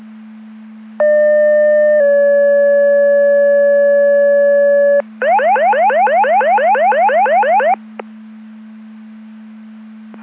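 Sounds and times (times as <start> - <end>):
siren: 1.0 - 7.8.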